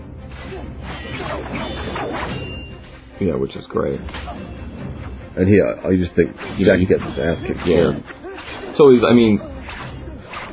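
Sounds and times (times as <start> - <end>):
film sword fight effects resembling lightsabers: 0.3 - 3.1, 6.2 - 10.5
speech: 0.6 - 2.6, 3.2 - 4.7, 5.4 - 8.2, 8.8 - 9.5.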